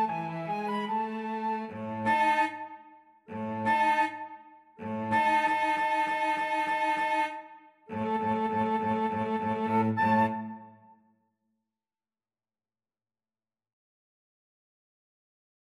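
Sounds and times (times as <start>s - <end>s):
cello playing in a flute and cello duet: 0.0s - 2.5s, 7.9s - 10.7s
flute playing in a flute and cello duet: 0.0s - 10.9s.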